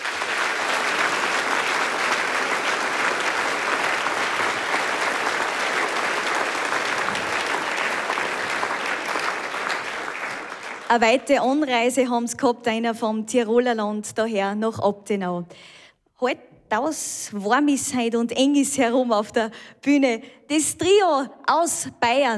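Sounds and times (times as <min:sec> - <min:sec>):
audience applause: 0:00.0 - 0:11.1
speech: 0:10.9 - 0:22.3.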